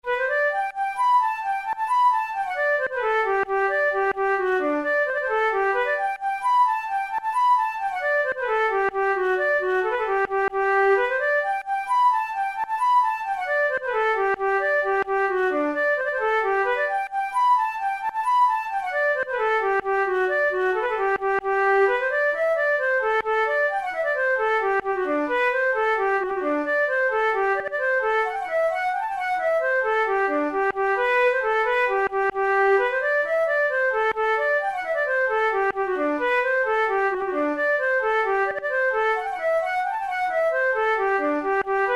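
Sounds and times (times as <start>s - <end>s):
flute playing a jig: 0.0s - 41.9s.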